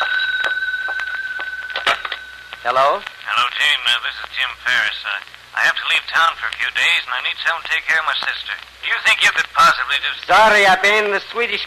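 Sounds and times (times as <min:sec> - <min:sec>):
telephone ringing: 0:00.0 - 0:03.5
speech: 0:02.6 - 0:11.6.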